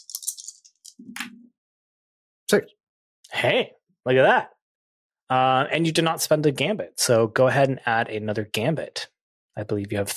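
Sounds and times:
dice being shaken and rolled onto a surface: 0:00.0 - 0:01.0
speech: 0:02.5 - 0:04.6, 0:05.3 - 0:10.1.

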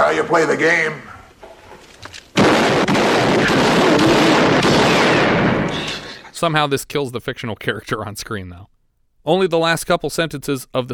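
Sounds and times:
speech: 0:00.3 - 0:01.1, 0:06.4 - 0:10.9
real gun gunshots fired into a projector screen in a film scene: 0:02.4 - 0:06.3.

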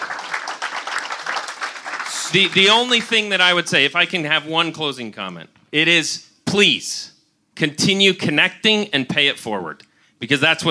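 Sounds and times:
audience round of applause: 0:00.0 - 0:03.0
speech: 0:02.3 - 0:10.6.

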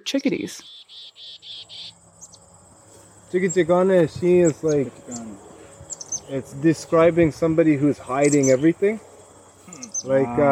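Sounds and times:
speech: 0:00.0 - 0:01.8, 0:03.3 - 0:05.5, 0:06.3 - 0:09.1, 0:09.7 - 0:10.5
crickets chirping: 0:00.1 - 0:10.5
grasshoppers: 0:00.1 - 0:10.5.

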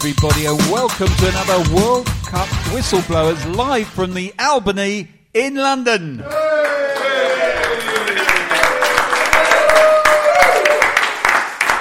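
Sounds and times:
speech: 0:00.0 - 0:06.4
live audience applauding and cheering: 0:06.2 - 0:11.7.

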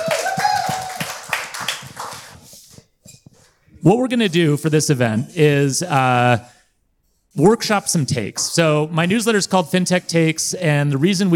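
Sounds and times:
audience applause: 0:00.0 - 0:02.5
speech: 0:03.8 - 0:06.6, 0:07.4 - 0:11.3.

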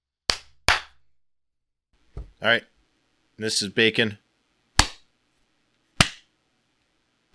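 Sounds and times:
three well-spaced hand claps: 0:00.3 - 0:01.0
speech: 0:02.4 - 0:02.7, 0:03.4 - 0:04.2.

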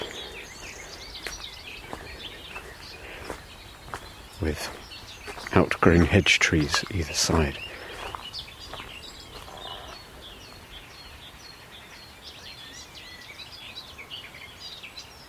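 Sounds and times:
garden warbler singing on Sugar Loaf mountain: 0:00.0 - 0:15.2
speech: 0:04.4 - 0:04.8, 0:05.5 - 0:07.7.

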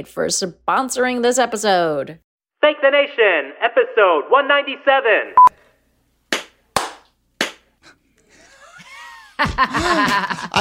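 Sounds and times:
speech: 0:00.0 - 0:05.6, 0:09.4 - 0:10.5
hand clapping: 0:06.3 - 0:07.7
laughter: 0:08.2 - 0:10.5.

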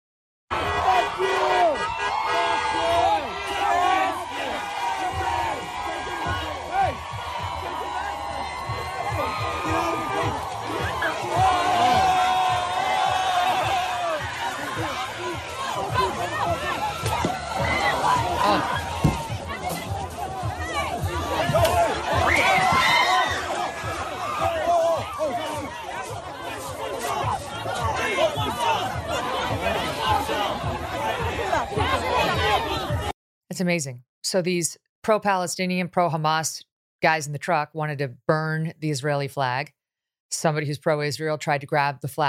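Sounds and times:
rally crowd shouting in chaos: 0:00.5 - 0:33.1
speech: 0:33.6 - 0:42.2.

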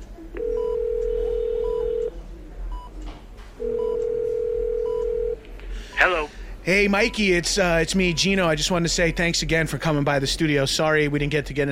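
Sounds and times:
faint noise: 0:00.0 - 0:11.6
outgoing telephone call ringing tone: 0:00.4 - 0:02.1, 0:03.6 - 0:05.4
speech: 0:06.6 - 0:11.6.

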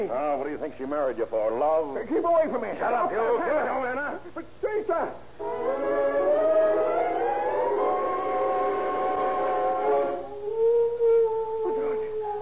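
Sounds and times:
speech: 0:00.0 - 0:06.9
dog howling: 0:05.4 - 0:12.4.

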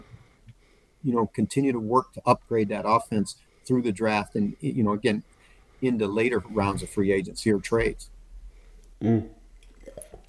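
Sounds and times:
speech: 0:01.0 - 0:08.2, 0:09.0 - 0:09.4
slurping sip of tea: 0:09.6 - 0:10.2.

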